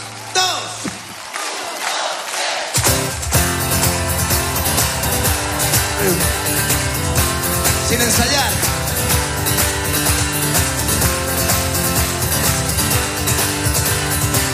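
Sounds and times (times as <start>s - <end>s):
live concert audience singing and shouting along: 1.3s - 2.8s
full band music at a live concert: 2.8s - 14.5s
speech: 8.0s - 8.8s.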